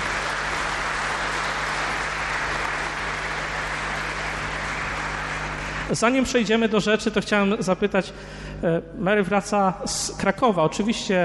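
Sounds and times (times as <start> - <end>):
audience applause: 0.0 - 6.2
speech: 5.9 - 11.2.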